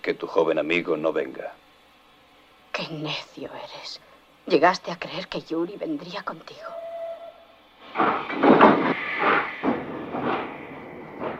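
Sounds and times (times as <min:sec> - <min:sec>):
steam train hissing steam pulling away from a station: 0:00.0 - 0:11.3
speech: 0:00.1 - 0:01.6, 0:02.8 - 0:06.8, 0:07.9 - 0:08.5
steam train chuffing pulling away from a station: 0:06.1 - 0:11.3.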